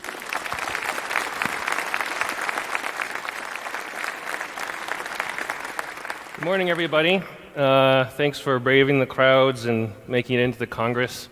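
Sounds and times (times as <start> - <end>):
large audience applause: 0.0 - 7.4
speech: 6.4 - 11.3.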